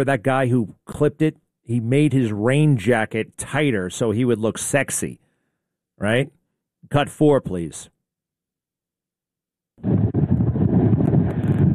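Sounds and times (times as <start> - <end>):
speech: 0.0 - 5.2, 6.0 - 8.0
wind buffeting the microphone: 9.8 - 11.7
strong storm wind on a beach: 10.0 - 11.7.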